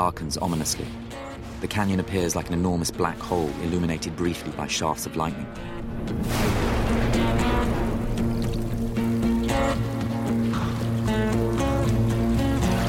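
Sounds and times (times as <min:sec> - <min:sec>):
speech: 0:00.0 - 0:06.6
rainwater running off a rock face into a narrow canyon during a storm: 0:05.8 - 0:12.8.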